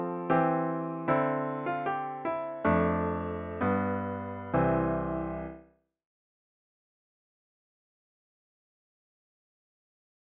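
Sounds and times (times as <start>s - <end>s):
solo piano: 0.0s - 5.8s.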